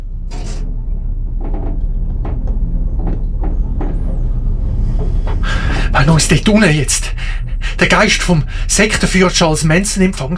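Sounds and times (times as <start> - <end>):
elevator door sliding shut with a firm jolt: 0.0 - 6.9
elevator moving downward: 0.0 - 10.3
speech: 6.0 - 10.3.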